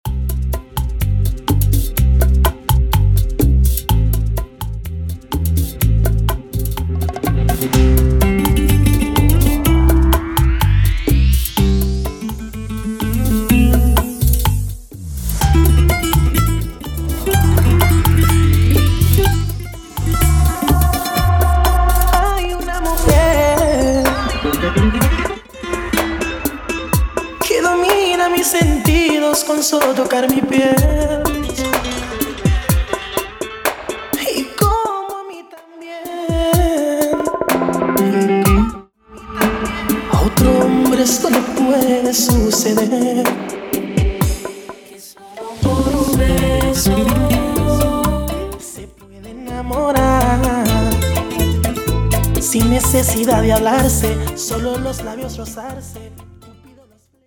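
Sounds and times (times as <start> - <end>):
125 BPM music intro, break and outro: 0.0 - 34.7, 36.8 - 56.2.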